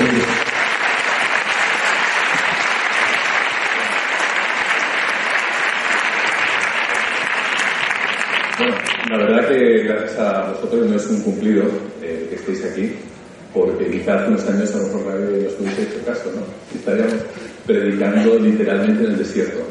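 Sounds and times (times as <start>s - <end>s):
sustained audience applause: 0.0s - 9.3s
speech: 10.1s - 19.7s.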